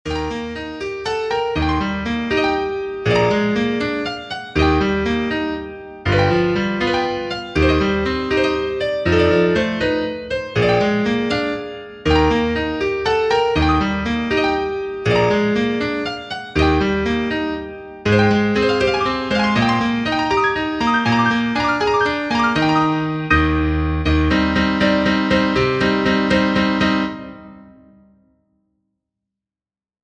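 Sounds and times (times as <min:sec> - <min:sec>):
piano: 0:00.0 - 0:28.6.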